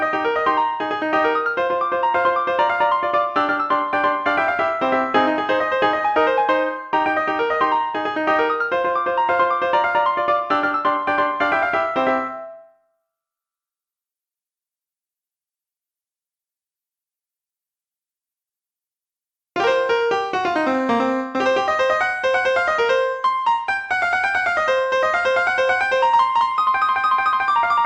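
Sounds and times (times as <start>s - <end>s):
piano: 0.0s - 12.9s, 19.6s - 27.8s.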